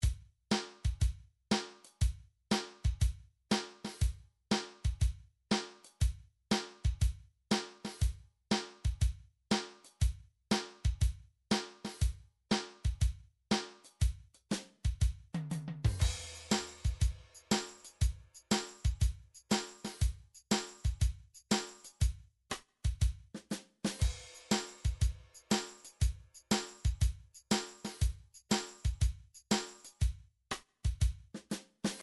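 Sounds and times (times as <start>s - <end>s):
foxtrot drum beat: 0.0s - 32.0s.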